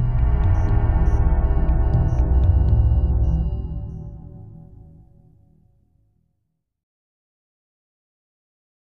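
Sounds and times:
eerie ambient music bed: 0.0 - 6.0.

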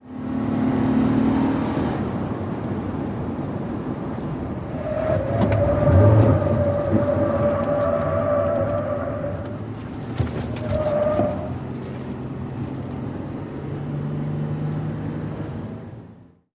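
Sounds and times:
SUV truck accelerating around a corner heard from interior: 0.0 - 16.4.

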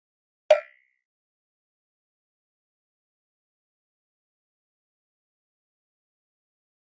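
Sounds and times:
button hit on hollow tin: 0.5 - 0.7.

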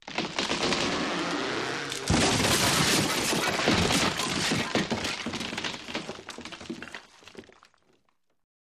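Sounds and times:
car crashing through a wall: 0.5 - 4.7
laughter: 2.2 - 5.4.

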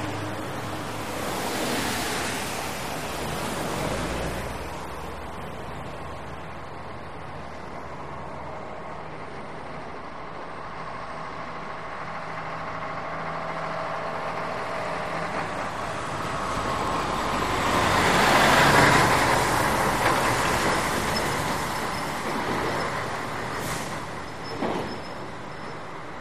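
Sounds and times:
wet traffic passing by: 0.0 - 24.5
truck squeaks and rattles: 18.5 - 26.1.

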